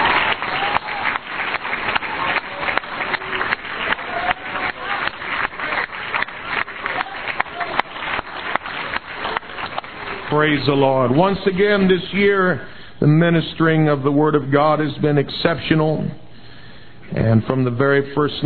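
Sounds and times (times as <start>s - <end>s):
audience clapping: 0.0s - 12.0s
speech: 10.4s - 16.2s, 17.1s - 18.4s.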